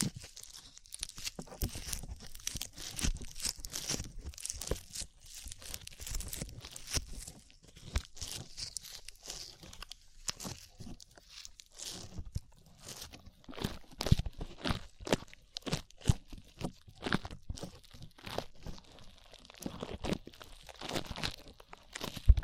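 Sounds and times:
slime squished and pulled: 0.0s - 22.4s.

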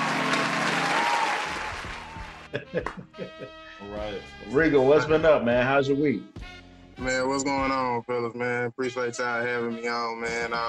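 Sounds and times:
audience applause welcoming a guest onto a show: 0.0s - 3.2s
laughter: 2.4s - 3.6s
speech: 2.5s - 10.6s.

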